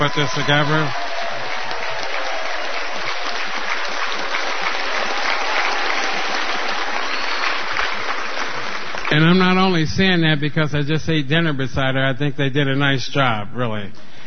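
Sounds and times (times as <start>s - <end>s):
speech: 0.0s - 1.0s, 9.2s - 14.1s
round of applause: 0.0s - 10.0s.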